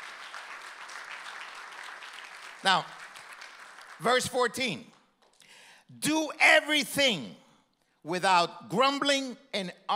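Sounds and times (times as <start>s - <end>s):
audience applause: 0.0s - 4.3s
speech: 2.6s - 3.0s, 4.0s - 4.9s, 5.9s - 7.4s, 8.0s - 9.9s.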